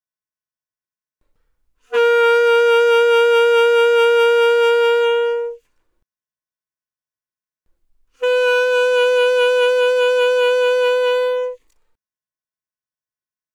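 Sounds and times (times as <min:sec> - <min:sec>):
alto saxophone with vibrato: 0:01.9 - 0:05.6, 0:08.2 - 0:11.7.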